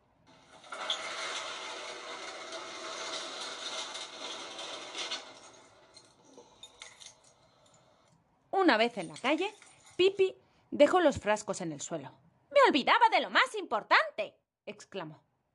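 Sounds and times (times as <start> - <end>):
metal shop shutter being pulled down: 0.3 - 6.8
speech: 8.7 - 15.3.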